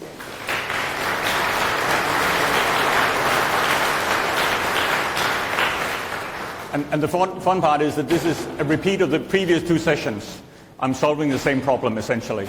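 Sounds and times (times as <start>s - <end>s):
audience applause: 0.0s - 6.8s
speech: 6.8s - 12.4s.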